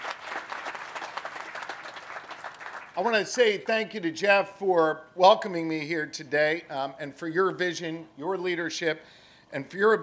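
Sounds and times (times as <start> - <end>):
audience applauding the agriculture secretary: 0.0 - 3.2
speech: 3.0 - 10.0.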